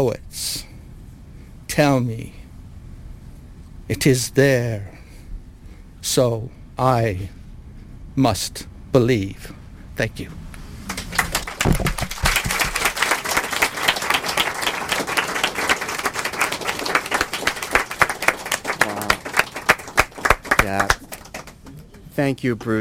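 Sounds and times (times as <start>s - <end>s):
speech: 0.0s - 0.7s, 1.8s - 2.4s, 3.9s - 4.9s, 6.0s - 7.4s, 8.2s - 10.4s, 22.2s - 22.7s
audience applause: 10.9s - 22.0s.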